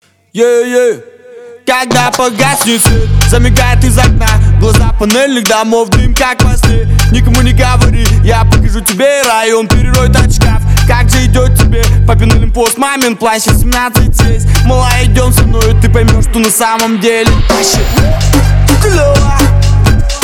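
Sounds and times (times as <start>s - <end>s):
Brazilian funk music: 1.8s - 20.2s.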